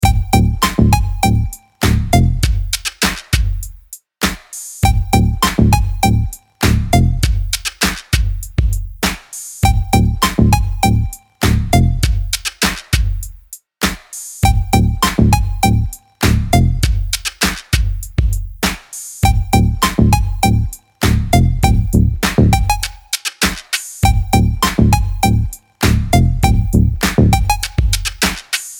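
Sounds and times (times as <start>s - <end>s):
funk music: 0.0s - 28.7s.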